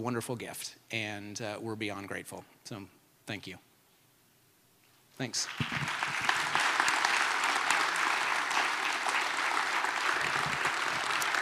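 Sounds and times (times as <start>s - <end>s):
speech: 0.0s - 3.7s, 5.2s - 6.0s
audience applause: 5.4s - 11.4s.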